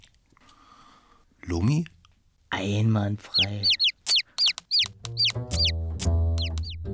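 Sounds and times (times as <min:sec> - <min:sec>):
speech: 0:01.5 - 0:01.9, 0:02.6 - 0:03.8
chick peeping: 0:03.3 - 0:05.7, 0:06.4 - 0:06.8.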